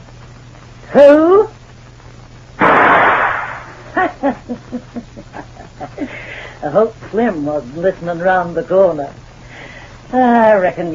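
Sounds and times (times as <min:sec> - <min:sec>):
speech: 0:00.9 - 0:01.6, 0:04.2 - 0:09.2, 0:10.1 - 0:10.9
gunshot shooting out a door lock: 0:02.6 - 0:03.8.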